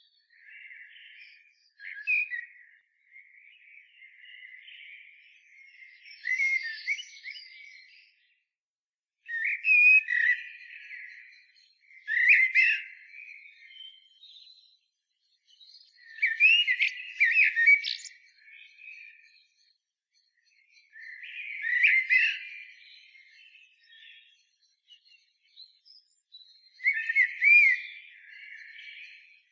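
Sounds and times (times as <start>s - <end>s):
Common blackbird singing: 3.5s - 8.1s, 9.3s - 29.5s.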